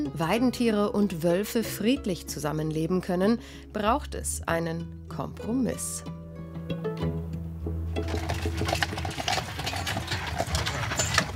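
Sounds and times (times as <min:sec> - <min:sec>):
speech: 0:00.2 - 0:07.1
horse hooves pulling a carriage: 0:07.9 - 0:11.3
carriage wheels rattling: 0:08.0 - 0:11.3.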